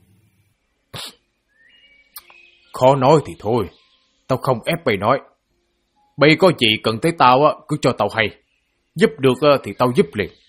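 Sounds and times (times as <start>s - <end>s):
older man sniffing sharply through the nose: 0.9s - 1.2s
speech: 2.8s - 5.3s, 6.2s - 8.4s, 9.0s - 10.4s.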